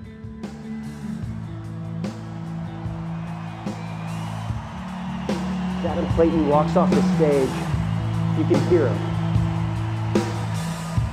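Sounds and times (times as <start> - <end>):
concert crowd cheering: 0.8 - 11.1
speech: 5.8 - 7.7, 8.4 - 9.1.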